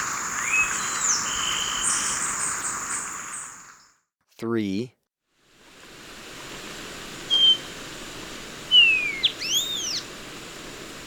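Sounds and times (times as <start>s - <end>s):
bronze-green euphonia calls: 0.0s - 3.9s, 7.3s - 7.6s, 8.7s - 10.0s
speech: 4.4s - 5.0s.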